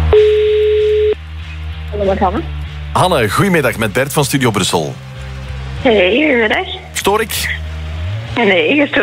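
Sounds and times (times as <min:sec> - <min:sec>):
telephone ringing tone during outgoing call: 0:00.1 - 0:01.2
speech: 0:02.1 - 0:05.1, 0:05.8 - 0:07.6, 0:08.3 - 0:09.0.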